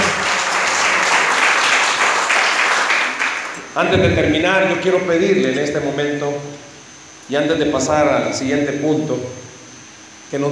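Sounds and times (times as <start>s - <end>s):
audience applause: 0.0s - 3.6s
speech: 3.8s - 6.6s, 7.3s - 9.4s, 10.3s - 10.5s.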